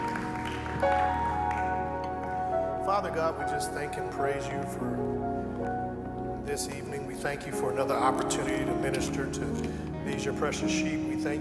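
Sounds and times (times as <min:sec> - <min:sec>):
congregation clapping hands in praise: 0:00.0 - 0:04.6
speech: 0:02.9 - 0:05.8, 0:06.5 - 0:11.4.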